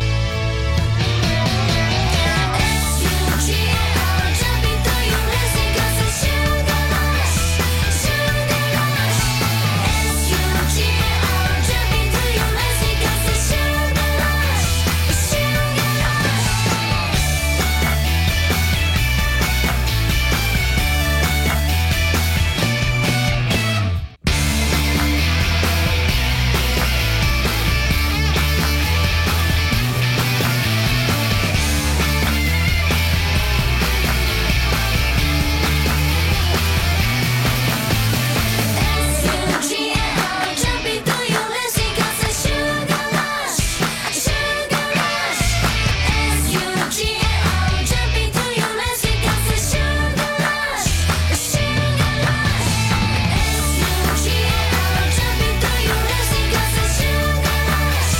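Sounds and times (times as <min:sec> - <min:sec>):
music: 0:00.0 - 0:58.1.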